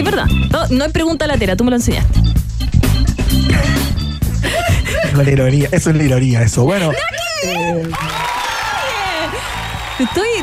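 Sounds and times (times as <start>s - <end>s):
speech: 0.1s - 3.8s, 4.4s - 8.3s, 10.0s - 10.4s
applause: 7.8s - 10.4s.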